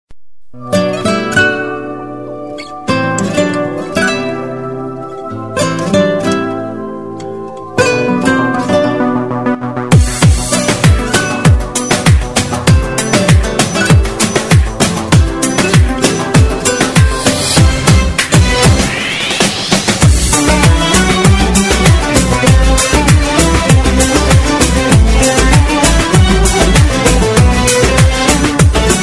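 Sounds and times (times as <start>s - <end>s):
guitar: 0.5s - 29.0s.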